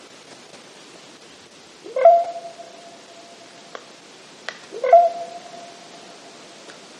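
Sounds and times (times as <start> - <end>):
common raven popping call: 1.8 - 6.9
common raven croak calls: 1.9 - 4.0, 4.5 - 6.7.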